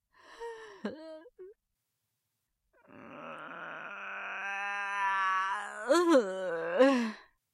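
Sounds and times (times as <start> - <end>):
person groaning: 2.8 - 6.9.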